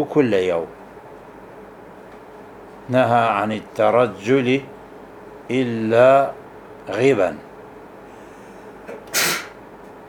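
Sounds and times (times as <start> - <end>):
speech: 0.0 - 0.8, 2.9 - 4.7, 5.5 - 7.5
person sneezing: 8.9 - 9.6.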